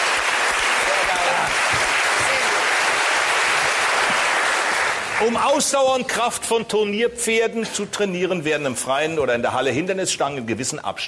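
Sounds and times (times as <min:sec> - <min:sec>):
audience applause: 0:00.0 - 0:05.7
speech: 0:05.2 - 0:11.0.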